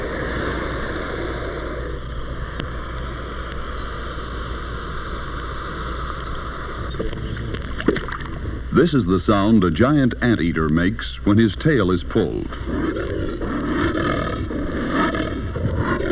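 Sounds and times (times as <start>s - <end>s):
American alligator fluttering hiss: 0.0s - 9.5s, 12.6s - 16.1s
speech: 8.8s - 12.8s.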